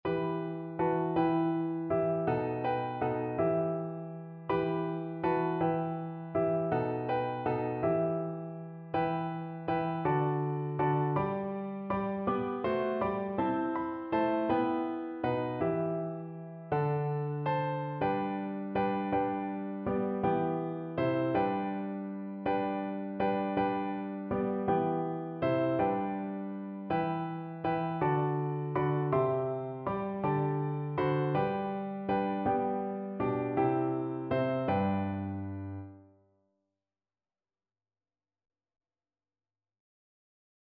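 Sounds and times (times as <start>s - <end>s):
piano duet: 0.0s - 36.2s.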